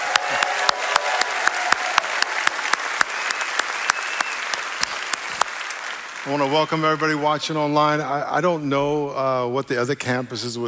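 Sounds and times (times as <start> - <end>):
church congregation clapping during a Sunday service: 0.0 - 8.0
speech: 6.3 - 10.6.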